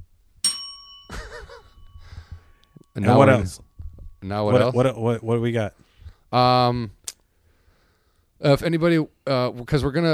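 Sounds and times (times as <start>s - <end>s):
bell ding: 0.4s - 4.5s
speech: 3.0s - 7.0s, 8.4s - 10.1s.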